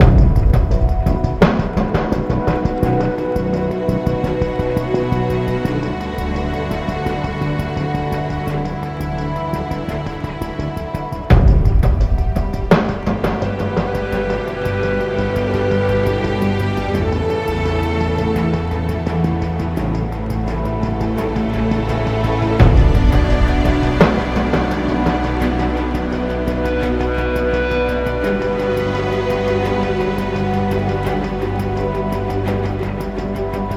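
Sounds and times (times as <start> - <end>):
ambient loading music: 0.0 - 33.7.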